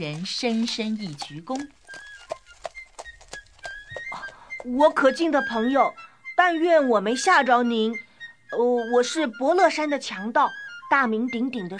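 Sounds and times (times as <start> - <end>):
speech: 0.0 - 2.0, 4.6 - 11.7
robber's horse hooves clip-clopping: 0.0 - 5.2.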